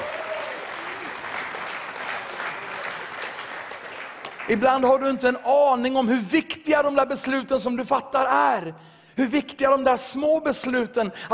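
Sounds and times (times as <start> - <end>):
audience cheering: 0.0 - 4.3
audience applause: 0.0 - 4.9
speech: 4.5 - 11.3.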